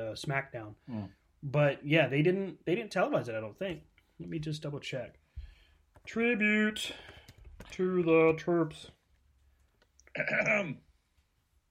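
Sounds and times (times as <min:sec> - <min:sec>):
speech: 0:00.0 - 0:05.2, 0:06.0 - 0:09.0, 0:10.2 - 0:10.8
throat clearing: 0:10.1 - 0:10.8.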